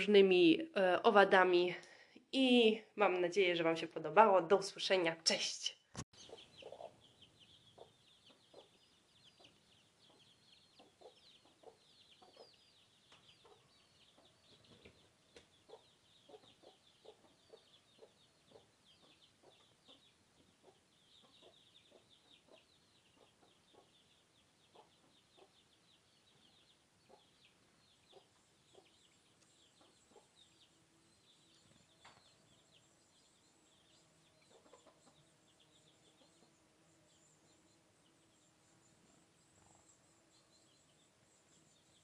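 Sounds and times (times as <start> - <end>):
speech: 0.0 - 6.1
small birds chirping: 0.0 - 42.0
chicken clucking: 6.2 - 25.7, 26.3 - 30.7, 34.3 - 36.6.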